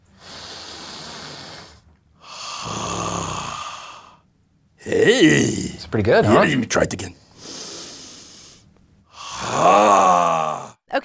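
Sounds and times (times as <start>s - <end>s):
deep belly breathing: 0.0s - 4.3s, 7.2s - 10.8s
speech: 2.6s - 2.9s, 4.9s - 7.2s.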